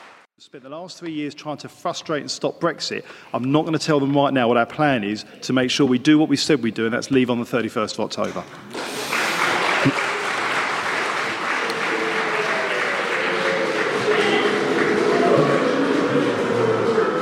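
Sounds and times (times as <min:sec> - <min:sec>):
speech: 0:00.4 - 0:09.0
crowd applauding: 0:08.7 - 0:17.2.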